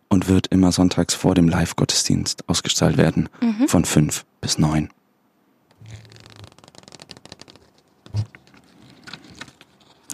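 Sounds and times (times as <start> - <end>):
speech: 0.2 - 5.0
Bible pages being turned: 5.7 - 10.1.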